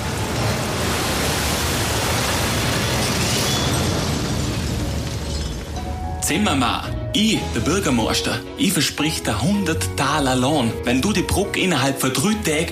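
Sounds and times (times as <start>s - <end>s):
flash flood: 0.0s - 5.8s
mighty thunderstorm: 0.0s - 6.2s
speech: 6.3s - 12.7s.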